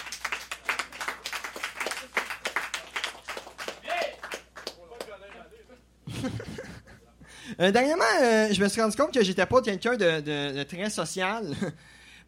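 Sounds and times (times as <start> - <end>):
audience applauding a comedian at a stand-up show: 0.0 - 5.5
laughter: 6.0 - 7.3
speech: 7.6 - 12.0.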